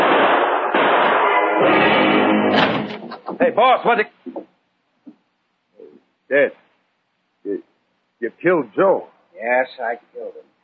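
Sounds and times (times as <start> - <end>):
gunshots: 0.0 - 3.6
speech: 3.4 - 4.4, 6.3 - 6.6, 7.4 - 10.5.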